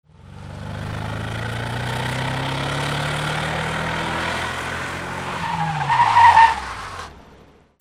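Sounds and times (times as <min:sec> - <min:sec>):
cars: 0:00.0 - 0:07.7.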